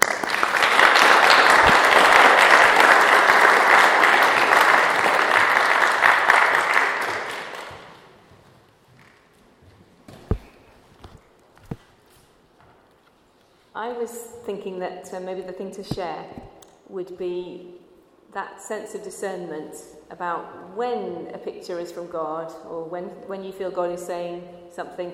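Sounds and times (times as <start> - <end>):
audience applause: 0.0 - 8.1
speech: 14.0 - 25.1.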